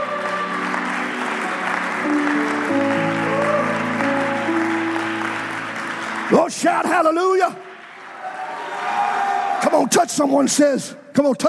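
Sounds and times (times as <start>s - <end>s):
audience clapping hands: 0.0s - 9.7s
speech: 6.4s - 7.7s, 9.7s - 11.4s.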